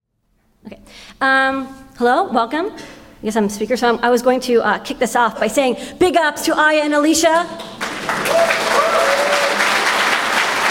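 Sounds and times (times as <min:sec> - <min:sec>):
speech: 0:01.1 - 0:08.5
audience applause: 0:07.7 - 0:10.7.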